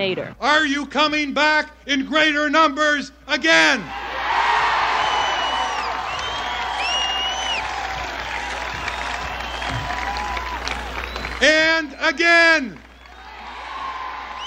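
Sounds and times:
speech: 0.0 - 4.0, 11.4 - 12.8
large rally crowd clapping: 3.9 - 14.4.

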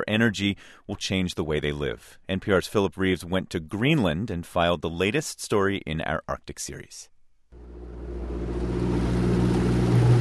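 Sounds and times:
speech: 0.1 - 7.1
motorboat engine droning: 7.6 - 10.1
water wash: 8.1 - 10.1.

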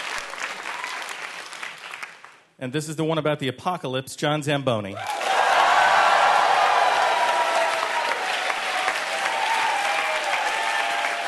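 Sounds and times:
applause: 0.0 - 2.4, 5.0 - 11.2
speech: 2.6 - 5.2.

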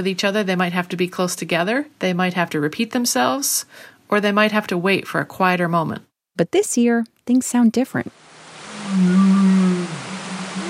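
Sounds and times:
speech: 0.0 - 8.2
whale calls: 8.6 - 10.6.

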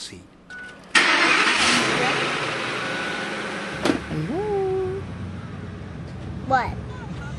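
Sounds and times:
Ford Expedition engine starting: 0.9 - 6.0
speech: 6.5 - 6.8.

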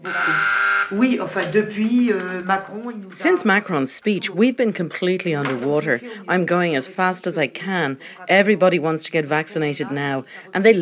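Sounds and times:
door entry buzzer: 0.0 - 1.1
speech: 0.9 - 10.7.

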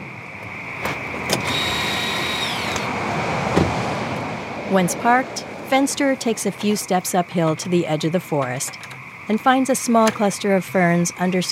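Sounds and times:
car engine and road rumble: 0.0 - 9.2
thin high whine: 0.0 - 11.5
speech: 4.7 - 11.5.

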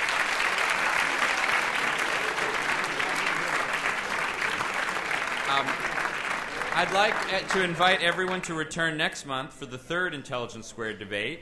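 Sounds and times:
audience applause after a debate result: 0.0 - 8.4
speech: 5.6 - 5.9, 6.8 - 11.4.

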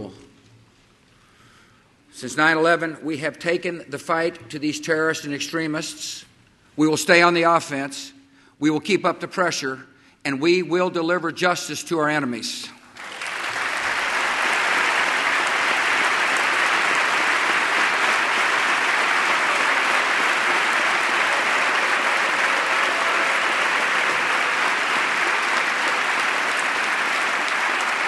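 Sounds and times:
speech: 2.2 - 12.8
members applauding in a chamber: 12.9 - 28.0.

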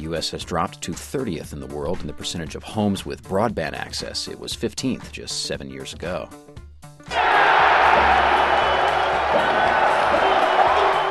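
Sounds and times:
speech: 0.1 - 6.5
Celtics basketball fans cheering: 7.1 - 11.0.

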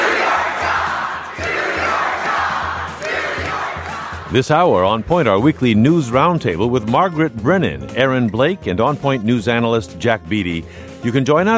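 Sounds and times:
crowd shouting at a raucous town hall meeting in Utah: 0.0 - 4.4
speech: 4.3 - 11.5.

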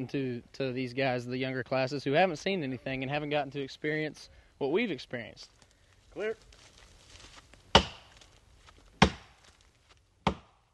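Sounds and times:
speech: 0.0 - 5.6, 6.2 - 6.7
axe chopping a tree: 7.7 - 9.6, 10.2 - 10.7.

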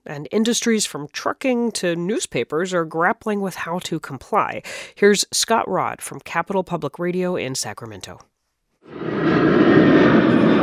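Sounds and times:
speech: 0.0 - 8.3
aircraft engines roaring at Sacramento International Airport: 8.9 - 10.6.

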